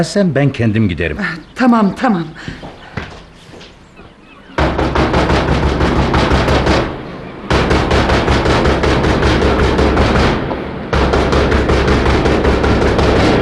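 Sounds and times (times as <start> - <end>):
speech: 0.0 - 2.8
frantic pounding on a door: 4.6 - 13.4.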